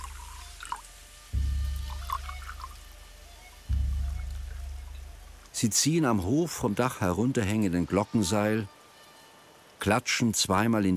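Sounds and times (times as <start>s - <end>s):
rice wine being poured: 0.0s - 1.0s, 1.7s - 2.8s
drips and trickles: 0.0s - 10.9s
speech: 5.6s - 8.8s, 9.8s - 10.9s.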